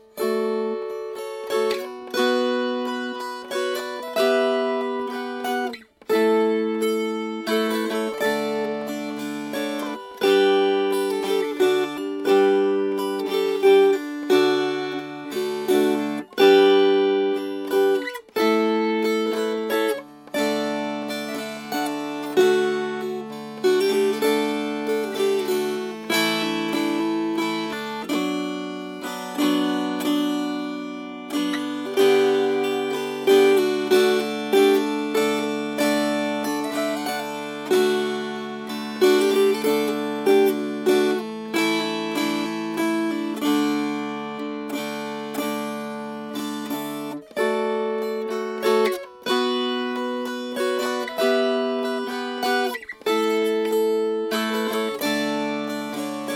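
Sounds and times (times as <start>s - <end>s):
strummed strings: 0.0s - 56.3s.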